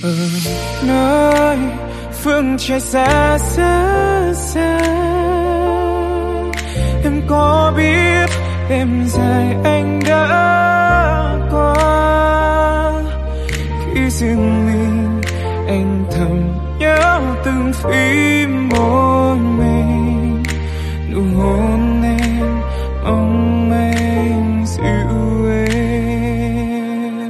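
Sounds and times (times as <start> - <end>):
song chorus: 0.0 - 27.2.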